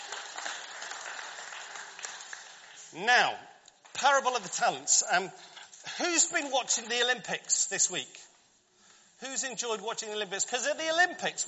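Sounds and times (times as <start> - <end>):
audience giving a short round of applause: 0.0 - 2.9
speech: 2.9 - 8.3, 9.2 - 11.4.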